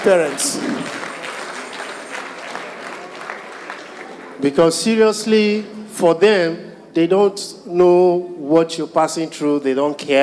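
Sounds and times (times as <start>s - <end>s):
speech: 0.0s - 1.0s, 4.4s - 10.2s
scattered small audience clapping: 0.0s - 4.6s.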